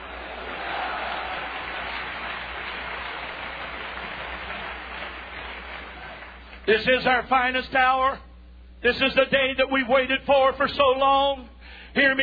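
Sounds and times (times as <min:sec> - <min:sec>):
large audience clapping and cheering: 0:00.0 - 0:06.7
speech: 0:06.7 - 0:12.2.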